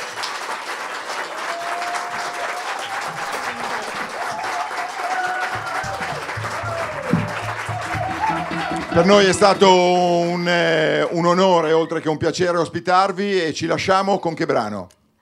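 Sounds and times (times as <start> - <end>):
audience applauding for musicians: 0.0 - 12.2
low thumps: 5.6 - 10.2
speech: 9.0 - 15.0.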